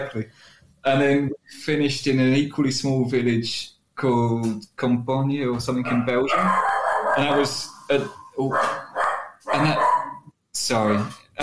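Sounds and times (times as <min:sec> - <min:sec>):
speech: 0:00.0 - 0:08.8, 0:09.5 - 0:09.9, 0:10.6 - 0:11.4
dog barking: 0:05.8 - 0:10.3.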